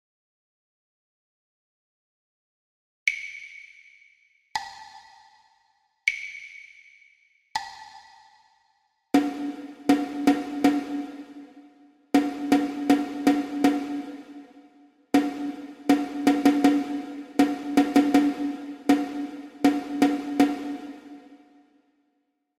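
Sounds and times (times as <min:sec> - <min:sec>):
rhythmic dictation exercise for ear training: 0:09.2 - 0:21.7.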